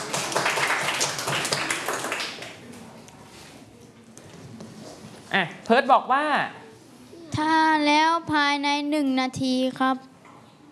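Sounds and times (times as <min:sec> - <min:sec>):
classroom applause: 0:00.0 - 0:02.6
speech: 0:05.4 - 0:06.6, 0:07.4 - 0:10.1.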